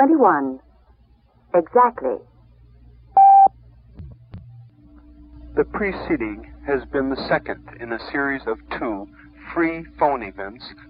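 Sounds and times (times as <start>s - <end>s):
speech: 0.0s - 0.6s, 1.5s - 2.3s, 5.6s - 10.8s
quiet hum: 0.0s - 10.8s
steady beep from a telephone time-of-day service: 3.2s - 3.5s.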